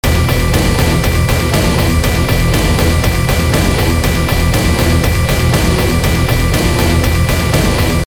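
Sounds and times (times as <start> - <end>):
music loop: 0.0 - 8.0.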